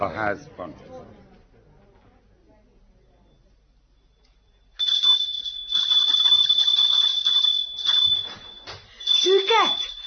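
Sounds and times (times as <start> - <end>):
speech: 0.0 - 1.2
doorbell being rung insistently: 4.6 - 10.0.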